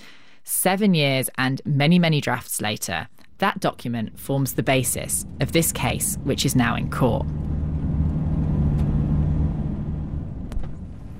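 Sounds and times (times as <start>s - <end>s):
speech: 0.6s - 7.5s
car engine rumbling as it pulls over by the side of the road in Kirua: 3.5s - 11.1s.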